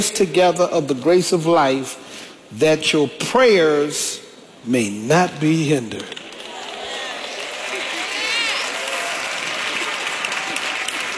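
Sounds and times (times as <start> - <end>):
speech: 0.0 - 6.2
audience clapping: 6.1 - 11.1.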